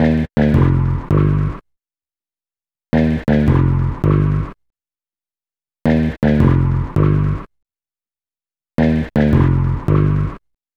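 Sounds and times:
hip-hop bass: 0.4s - 1.6s, 3.0s - 4.5s, 6.0s - 7.4s, 8.8s - 10.4s.

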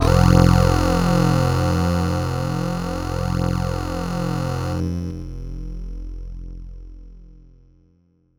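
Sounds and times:
PPG Wave 2.2 synth bass note F1: 0.0s - 5.2s.

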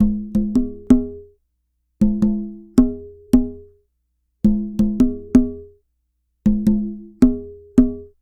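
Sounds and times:
African tubano drum: 0.0s - 1.3s, 2.0s - 3.7s, 4.4s - 5.7s, 6.4s - 8.2s.

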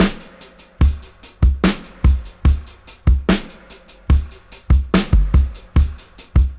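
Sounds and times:
73 BPM dub drum loop: 0.0s - 6.5s.

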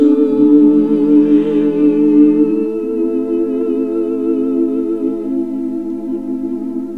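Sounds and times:
classic vocal singing: 0.0s - 6.9s.

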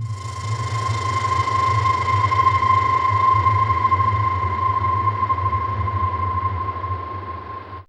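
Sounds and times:
atmospheric ambience: 0.0s - 7.8s.

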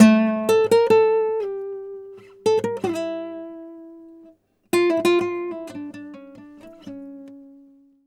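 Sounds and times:
flamenco guitar: 0.0s - 7.9s.

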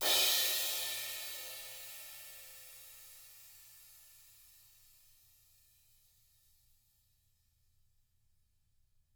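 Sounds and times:
ride cymbal swish: 0.0s - 2.6s.

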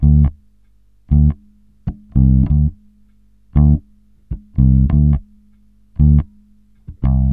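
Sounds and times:
smooth bass groove in D at 98 bpm: 0.0s - 0.4s, 1.1s - 2.8s, 3.5s - 5.3s, 6.0s - 7.3s.

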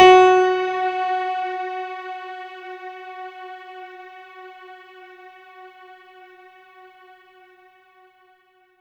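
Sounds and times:
synth note F sharp 4: 0.0s - 3.6s.

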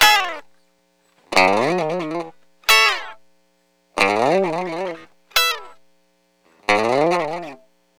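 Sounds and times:
dry lounge electric guitar: 0.0s - 0.5s, 1.3s - 3.3s, 4.0s - 7.7s.

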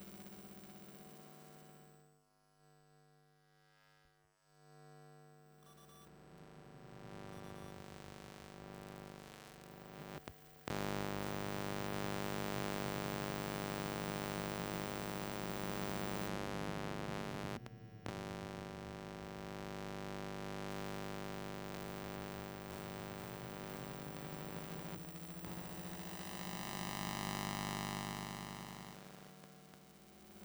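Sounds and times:
electromagnetic field electronic buzz: 5.9s - 29.1s.

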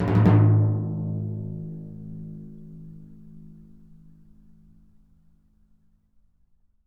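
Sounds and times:
Synclavier timpani A# note: 0.0s - 2.5s.

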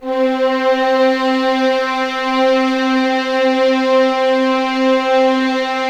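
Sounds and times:
legato violins on C4: 0.0s - 5.8s.

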